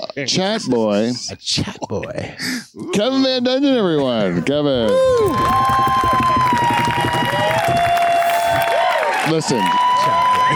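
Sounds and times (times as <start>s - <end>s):
speech: 0.2s - 6.5s, 9.3s - 10.5s
crowd cheering and whooping: 5.2s - 10.5s.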